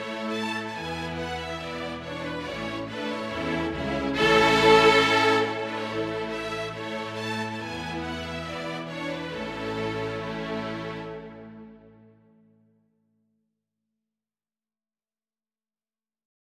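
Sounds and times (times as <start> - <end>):
strings playing pantomime ballet music: 0.0 - 12.2.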